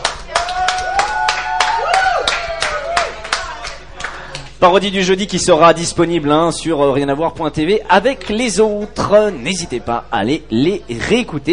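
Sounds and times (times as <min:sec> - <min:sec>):
audience applause: 0:00.0 - 0:04.4
speech: 0:04.6 - 0:11.5.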